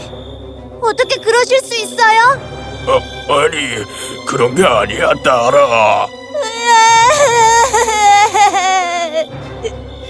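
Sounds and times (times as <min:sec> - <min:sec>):
speech: 0:00.8 - 0:07.8
young girl, the giant's daughter, crying: 0:06.3 - 0:09.8.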